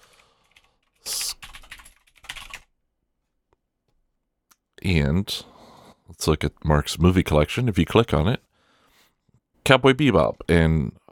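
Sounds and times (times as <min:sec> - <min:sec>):
typing a website address on a computer keyboard: 0:00.1 - 0:02.7
speech: 0:04.8 - 0:05.5, 0:06.1 - 0:08.5, 0:09.7 - 0:11.0.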